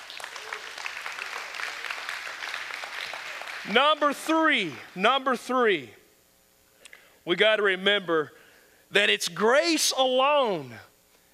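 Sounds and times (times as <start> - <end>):
crowd of people clapping together: 0.0 - 5.0
speech: 3.6 - 6.0, 7.2 - 10.9.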